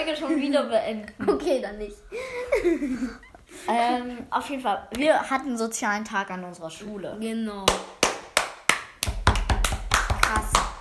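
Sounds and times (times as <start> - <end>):
speech: 0.0 - 8.0
laughter: 2.2 - 3.4
hand clapping applause: 7.7 - 10.8.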